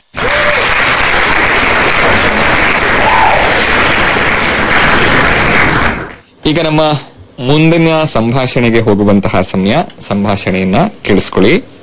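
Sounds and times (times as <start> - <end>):
applause during a quiz segment: 0.0 - 6.3
speech: 6.5 - 11.7.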